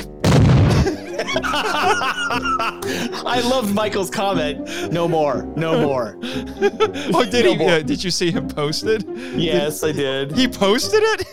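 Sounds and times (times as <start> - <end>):
battleship explosion sound effect: 0.2 - 0.9
people laughing: 0.7 - 10.0
speech: 1.3 - 11.3.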